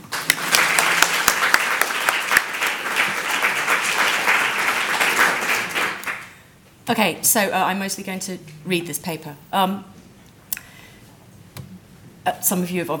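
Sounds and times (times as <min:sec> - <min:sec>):
audience applause: 0:00.0 - 0:06.4
speech: 0:06.9 - 0:10.0, 0:12.5 - 0:12.9.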